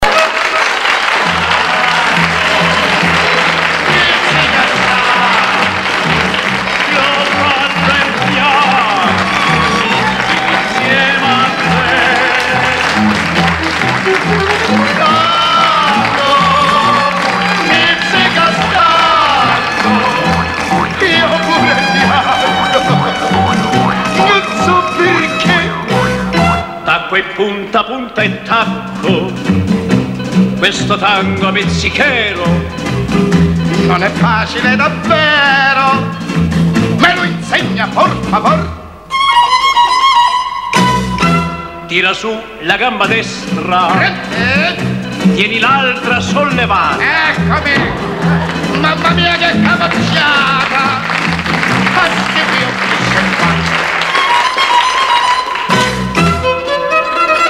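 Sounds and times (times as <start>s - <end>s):
laughter: 0.0s - 0.8s, 1.4s - 25.4s, 47.0s - 54.0s
tango music: 0.0s - 57.4s.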